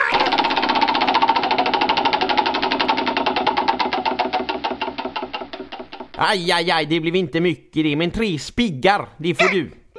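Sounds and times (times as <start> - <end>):
prize wheel spinning and clicking: 0.1 - 6.3
speech: 6.2 - 9.8.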